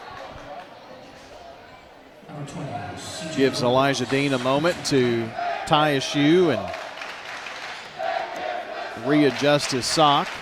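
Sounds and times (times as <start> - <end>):
speech: 2.4 - 6.8, 9.0 - 10.4
student section cheering at basketball game: 2.6 - 10.3.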